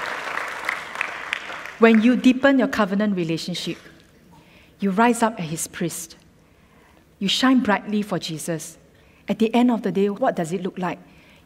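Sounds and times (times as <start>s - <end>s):
audience applause: 0.0s - 1.9s
speech: 1.8s - 3.9s, 4.8s - 6.2s, 7.2s - 11.1s.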